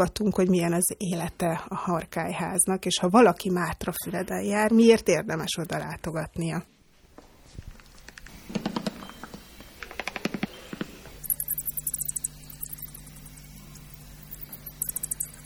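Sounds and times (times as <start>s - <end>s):
speech: 0.0s - 6.7s
steady low electrical hum: 0.0s - 15.4s
recorded bat calls played through a speaker at an exhibit: 10.0s - 15.4s.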